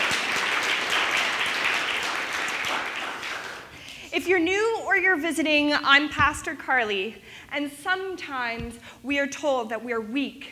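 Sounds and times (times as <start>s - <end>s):
audience round of applause: 0.0s - 4.0s
speech: 4.2s - 10.5s.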